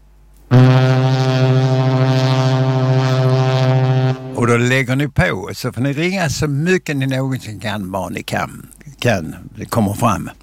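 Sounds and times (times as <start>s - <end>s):
quiz show wrong-answer buzzer tone: 0.5s - 4.4s
speech: 4.5s - 10.4s.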